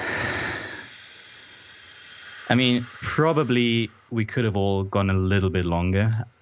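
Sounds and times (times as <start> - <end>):
long breathy exhale at the end of a breathing exercise: 0.0 - 4.2
speech: 2.5 - 6.4.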